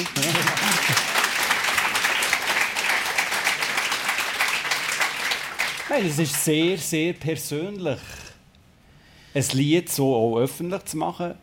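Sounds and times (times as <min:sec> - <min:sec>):
audience applause: 0:00.0 - 0:06.5
speech: 0:05.9 - 0:08.2, 0:09.3 - 0:11.4.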